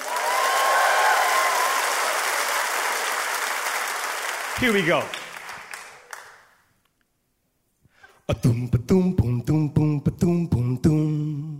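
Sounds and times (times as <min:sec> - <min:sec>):
audience clapping: 0:00.0 - 0:06.7
speech: 0:04.6 - 0:05.2, 0:08.3 - 0:11.5.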